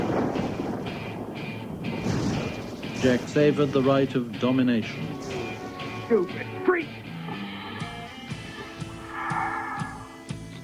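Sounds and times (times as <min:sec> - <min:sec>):
rolling thunder boom: 0:00.0 - 0:05.8
speech: 0:03.0 - 0:05.2, 0:06.1 - 0:07.0.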